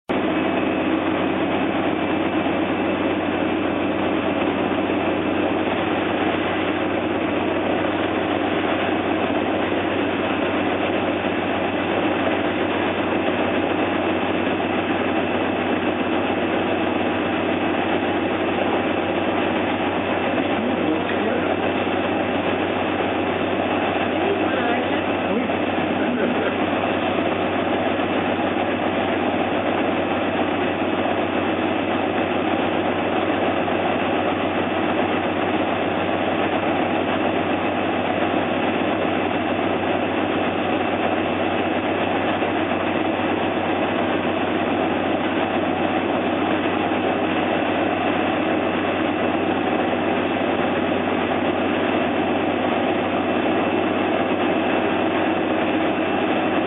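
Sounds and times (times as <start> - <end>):
machine running: 0.1 - 56.6.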